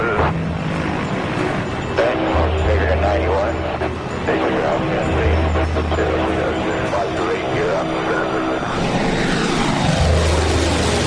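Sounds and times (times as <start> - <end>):
water bomber aircraft taking off: 0.0 - 11.0.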